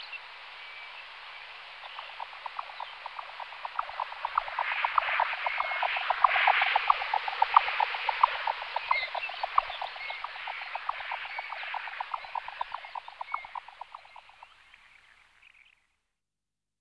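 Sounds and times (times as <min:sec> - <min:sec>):
hiss: 0:00.0 - 0:15.8
jack snipe song galloping pulses: 0:01.8 - 0:14.7.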